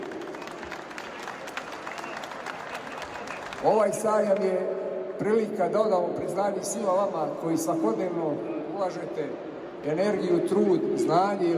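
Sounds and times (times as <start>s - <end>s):
audience applause at an agricultural fair ceremony: 0.0s - 4.4s
speech: 3.6s - 11.5s.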